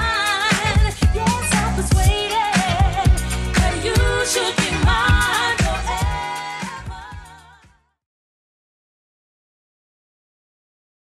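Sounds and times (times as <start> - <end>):
80s style music at 118 bpm: 0.0 - 7.7.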